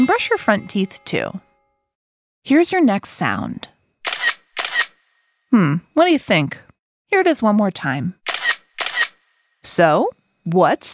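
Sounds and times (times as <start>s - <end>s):
speech: 0.0s - 1.4s, 2.4s - 3.7s, 5.5s - 8.2s, 9.6s - 10.9s
camera: 4.0s - 5.2s, 8.3s - 9.4s.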